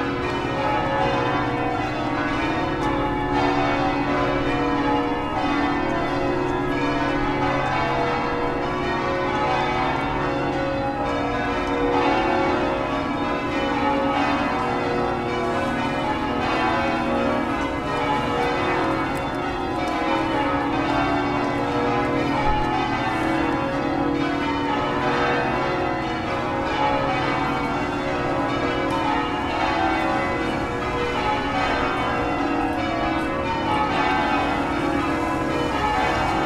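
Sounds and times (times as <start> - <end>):
church bells ringing: 0.0 - 36.4.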